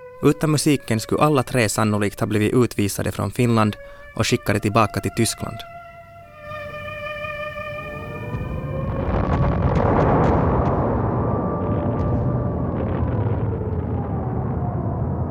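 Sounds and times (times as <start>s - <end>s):
speech: 0.2s - 5.7s
bombs exploding in air raid: 8.0s - 15.3s.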